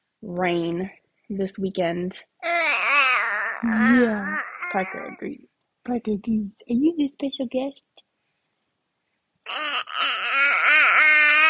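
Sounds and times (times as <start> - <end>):
speech: 0.2 - 2.3, 3.6 - 7.8
baby crying: 2.4 - 5.3, 9.5 - 11.4.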